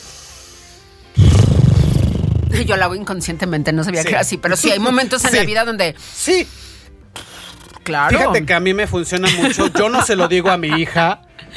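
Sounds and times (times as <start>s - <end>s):
person lip trill exhale: 1.2s - 2.7s, 7.2s - 7.8s
speech: 2.6s - 6.7s, 7.9s - 11.5s
laughter: 9.2s - 11.5s.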